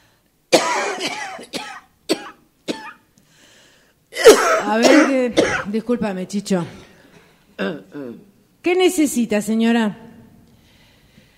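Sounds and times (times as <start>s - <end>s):
person coughing from fever: 0.6s - 3.0s, 4.2s - 5.7s
speech: 4.7s - 6.9s, 7.6s - 10.1s.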